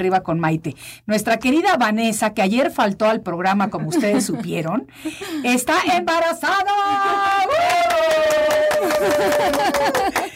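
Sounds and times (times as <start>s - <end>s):
speech: 0.0s - 10.3s
laughter: 3.7s - 4.7s, 6.7s - 10.3s
studio crew applauding: 7.2s - 10.3s.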